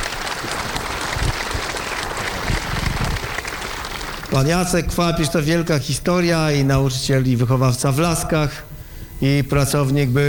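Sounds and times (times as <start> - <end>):
audience applause: 0.0 - 4.6
speech: 4.4 - 10.2.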